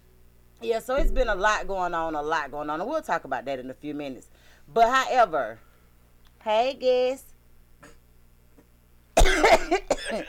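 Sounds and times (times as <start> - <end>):
speech: 0.6 - 5.7, 6.4 - 7.3, 9.5 - 10.2
person coughing while choking: 7.8 - 8.0, 8.6 - 10.2.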